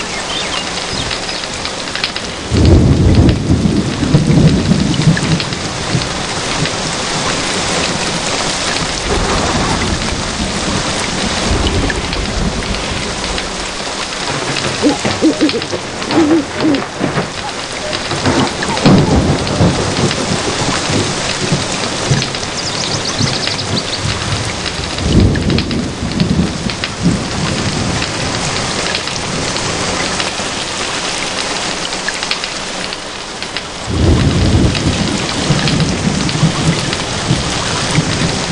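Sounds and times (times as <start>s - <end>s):
rain in the forest: 0.0s - 38.5s.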